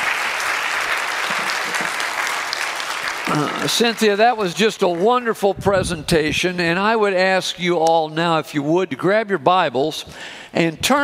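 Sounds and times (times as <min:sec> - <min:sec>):
audience applause: 0:00.0 - 0:05.4
speech: 0:03.4 - 0:11.0.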